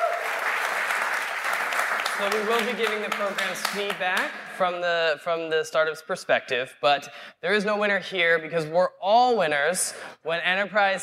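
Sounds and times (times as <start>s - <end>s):
audience applause: 0.0s - 4.3s
speech: 2.2s - 11.0s.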